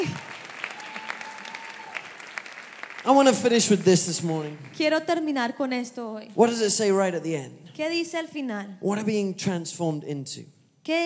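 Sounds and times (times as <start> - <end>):
audience applause: 0.0 - 4.9
speech: 3.0 - 11.0.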